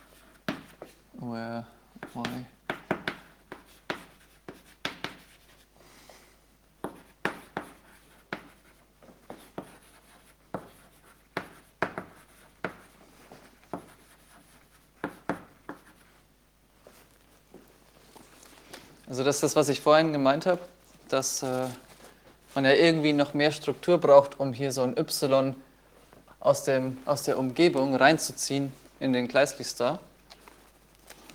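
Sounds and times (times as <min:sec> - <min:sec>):
speech: 0:01.2 - 0:02.6, 0:19.1 - 0:21.8, 0:22.6 - 0:25.7, 0:26.4 - 0:30.1
pen strokes scratching on paper, writing by hand: 0:03.0 - 0:05.6, 0:06.8 - 0:13.0, 0:13.6 - 0:16.2.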